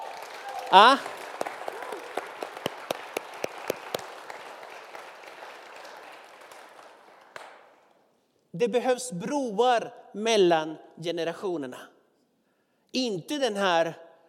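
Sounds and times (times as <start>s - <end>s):
audience applause: 0.0s - 7.8s
speech: 0.7s - 1.1s, 8.6s - 11.9s, 12.9s - 14.0s.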